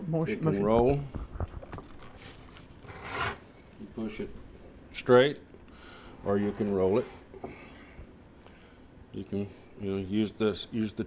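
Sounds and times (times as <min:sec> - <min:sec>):
speech: 0:00.1 - 0:01.5, 0:03.9 - 0:04.4, 0:05.0 - 0:05.5, 0:06.2 - 0:07.6, 0:09.2 - 0:11.0
round head knife cutting leather: 0:02.8 - 0:03.4.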